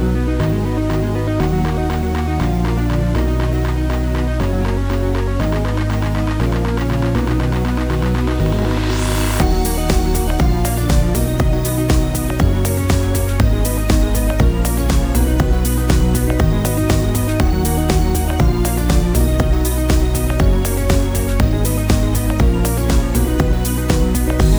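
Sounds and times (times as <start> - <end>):
electronic dance music: 0.0 - 24.5.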